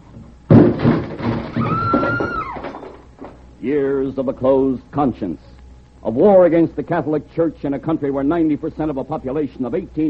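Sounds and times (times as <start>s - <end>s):
door being broken down: 0.5s - 3.4s
speech: 3.6s - 10.0s.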